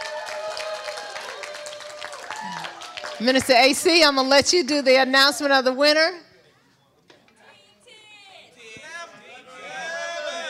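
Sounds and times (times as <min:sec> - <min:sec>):
crowd applause: 0:00.0 - 0:03.8
speech: 0:02.4 - 0:06.3.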